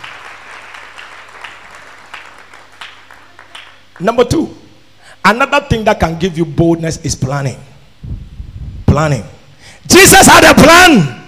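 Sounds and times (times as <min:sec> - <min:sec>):
audience clapping hands: 0:00.0 - 0:04.2
speech: 0:04.0 - 0:04.6, 0:05.2 - 0:07.7, 0:09.0 - 0:11.2.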